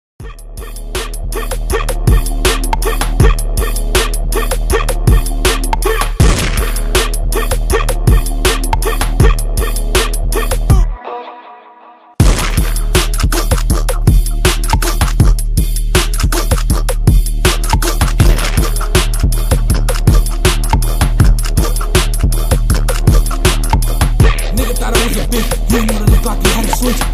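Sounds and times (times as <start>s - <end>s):
80 bpm music loop: 0.2s - 11.0s, 12.2s - 27.1s.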